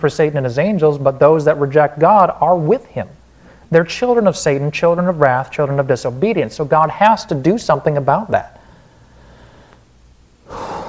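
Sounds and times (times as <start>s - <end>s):
speech: 0.0s - 8.6s
preacher's deep gasping inhale mid-sermon: 3.3s - 3.7s, 8.6s - 10.8s.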